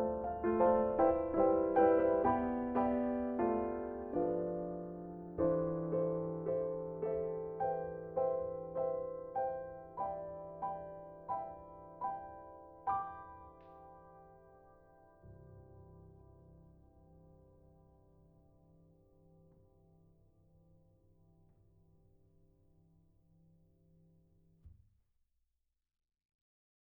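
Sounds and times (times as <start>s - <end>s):
Christmas song: 0.0s - 15.1s.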